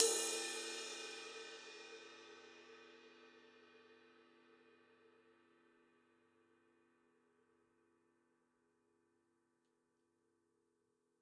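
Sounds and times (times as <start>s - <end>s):
ride cymbal on a Gretsch drum kit: 0.0s - 3.3s.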